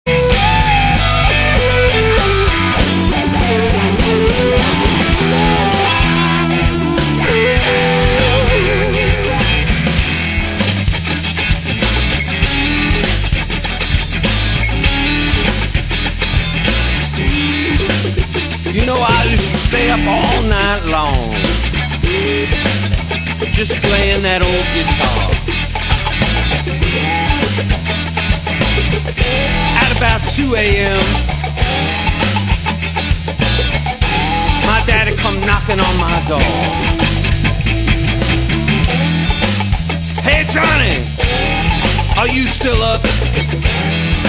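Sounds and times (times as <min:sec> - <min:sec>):
guitar: 0:00.0 - 0:44.2.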